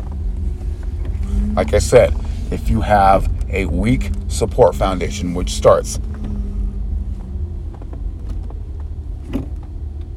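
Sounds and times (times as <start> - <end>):
car driving past a UPS site: 0.0 - 10.1
road rumble: 0.0 - 10.1
speech: 1.6 - 6.2.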